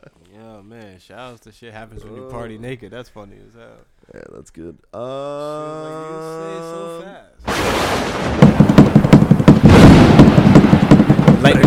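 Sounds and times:
speech: 0.0 - 8.7
noise: 0.0 - 11.6
pounding on a table: 8.4 - 11.6.

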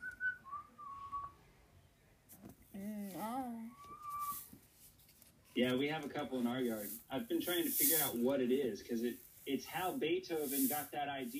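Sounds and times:
person whistling an imitation of a bird's song: 0.0 - 1.4, 3.7 - 4.4
speech: 5.6 - 11.3.

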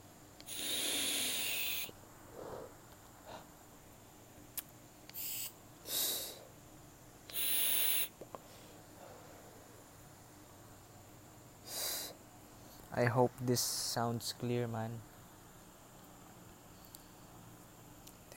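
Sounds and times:
puffing on a vape inhaling and exhaling: 0.4 - 2.7, 5.1 - 6.4, 7.3 - 8.2
speech: 13.0 - 15.1.

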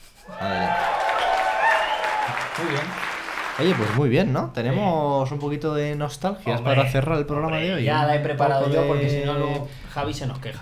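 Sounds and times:
applause sound effect from a small crowd: 0.5 - 4.1
speech: 2.6 - 3.0, 3.6 - 10.6.

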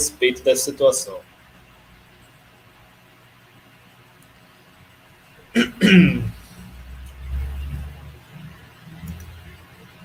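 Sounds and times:
speech: 0.0 - 1.3, 5.8 - 6.2
burp: 5.6 - 6.4.

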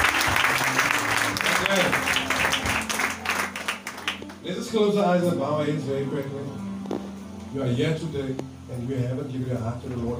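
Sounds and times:
audience clapping hands: 0.0 - 4.9
speech: 4.7 - 6.7, 7.5 - 10.1.

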